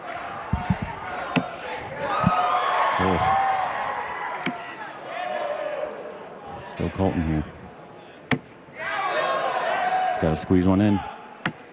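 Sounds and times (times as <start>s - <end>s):
crowd cheering and chanting at darts match: 0.0s - 6.9s, 8.7s - 11.4s
sharp thumps: 0.5s - 1.5s
speech: 3.0s - 3.4s, 7.0s - 7.6s, 10.2s - 11.1s.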